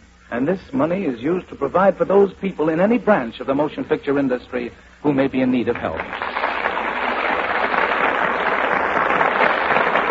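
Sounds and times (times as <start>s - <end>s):
speech: 0.3s - 6.3s
studio audience applause: 5.8s - 10.1s.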